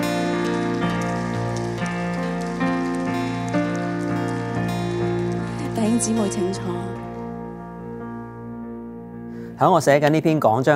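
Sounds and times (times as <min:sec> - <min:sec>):
crowd applause: 0:00.0 - 0:07.2
held keyboard or organ chords: 0:00.0 - 0:10.3
speech: 0:06.0 - 0:06.9, 0:09.6 - 0:10.7.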